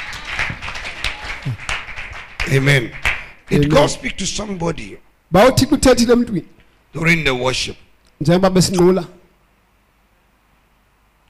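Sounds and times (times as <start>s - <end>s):
congregation clapping during a church service: 0.0s - 3.5s
speech: 1.4s - 1.7s, 2.5s - 9.2s.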